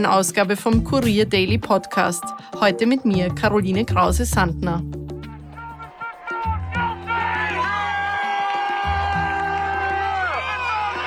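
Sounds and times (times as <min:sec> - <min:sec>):
speech: 0:00.0 - 0:05.0
crowd cheering outside courthouse: 0:05.2 - 0:11.0.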